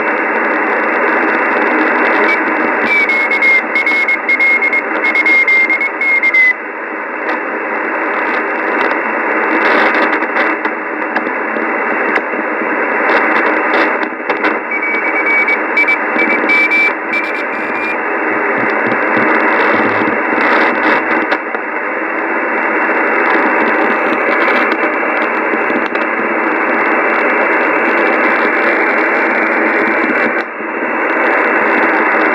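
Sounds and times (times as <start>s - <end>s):
noise: 0.0s - 32.3s
morse code beeps: 2.2s - 6.5s, 14.7s - 18.0s.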